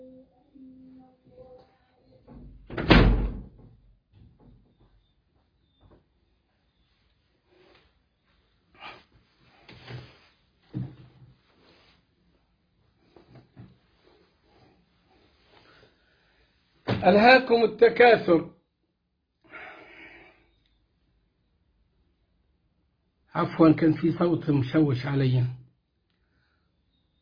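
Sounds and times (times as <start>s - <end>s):
door banging: 2.3s - 4.6s
speech: 17.0s - 18.5s, 23.6s - 25.6s.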